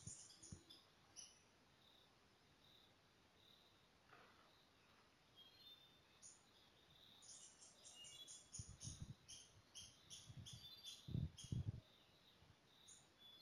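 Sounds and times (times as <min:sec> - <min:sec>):
montane foliage-gleaner calls: 0:00.0 - 0:01.4, 0:07.0 - 0:12.2, 0:12.8 - 0:13.4.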